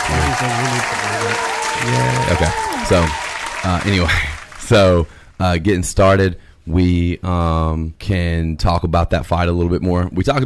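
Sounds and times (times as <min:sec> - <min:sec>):
applause: 0:00.0 - 0:05.2
speech: 0:00.4 - 0:10.4.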